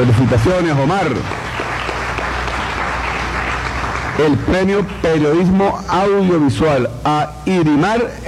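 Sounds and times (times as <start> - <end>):
speech: 0.0 - 1.6, 4.2 - 8.2
audience applause for a winner at a journalism awards ceremony: 0.0 - 5.5.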